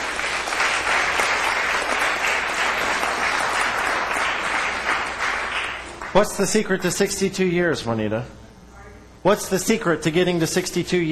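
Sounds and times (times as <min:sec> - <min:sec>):
audience applause: 0:00.0 - 0:06.2
speech: 0:06.1 - 0:08.4, 0:09.2 - 0:11.1.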